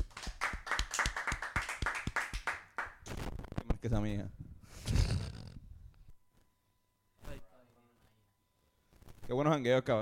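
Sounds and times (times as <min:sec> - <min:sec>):
applause: 0:00.0 - 0:03.0
speech: 0:03.8 - 0:04.4, 0:09.3 - 0:10.0.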